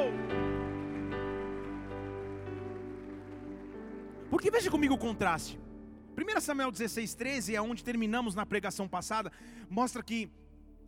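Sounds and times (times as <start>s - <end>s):
audience applauding: 0.0s - 5.5s
speech: 4.3s - 10.4s.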